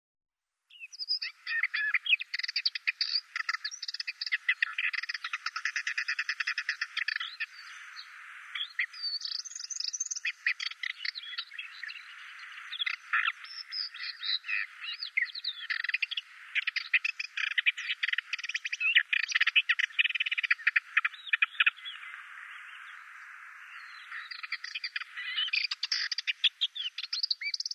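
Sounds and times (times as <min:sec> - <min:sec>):
Ménétries's warbler chattering into a buzzy rattle: 0:00.9 - 0:22.2, 0:23.7 - 0:27.7.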